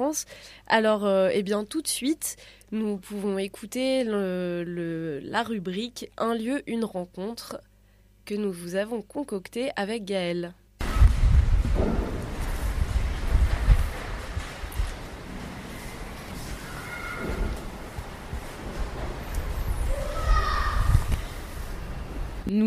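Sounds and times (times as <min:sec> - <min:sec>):
speech: 0:00.0 - 0:07.7, 0:08.3 - 0:10.6
storm wind blowing through concrete lattice facade: 0:10.8 - 0:22.5.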